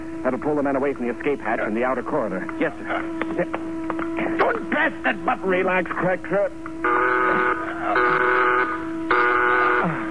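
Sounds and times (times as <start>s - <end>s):
speech: 0.2s - 7.0s
alarm sounding all over a ship: 6.8s - 10.0s.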